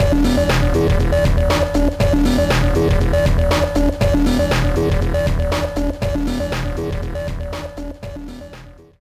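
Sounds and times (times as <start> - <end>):
background music: 0.0 - 8.9.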